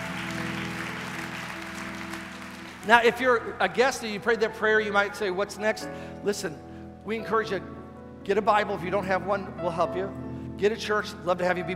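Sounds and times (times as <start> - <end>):
audience applauding: 0.0 - 4.0
speech: 2.8 - 11.7.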